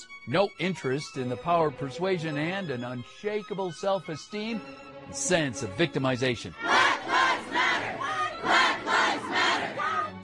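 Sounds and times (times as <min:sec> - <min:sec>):
speech: 0:00.0 - 0:06.8
protesters shouting: 0:06.6 - 0:10.2.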